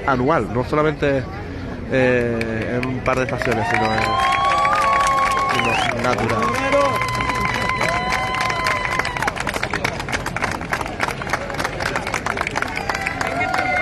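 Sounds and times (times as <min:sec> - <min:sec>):
speech: 0:00.0 - 0:04.4, 0:05.6 - 0:07.3
crowd applause: 0:02.4 - 0:13.8
cheering and whoops: 0:03.4 - 0:09.4, 0:12.9 - 0:13.8.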